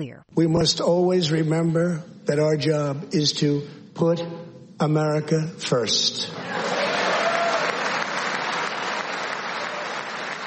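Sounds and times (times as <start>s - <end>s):
speech: 0.0s - 6.8s
audience applause: 6.4s - 10.4s
faint cheering: 6.5s - 10.4s.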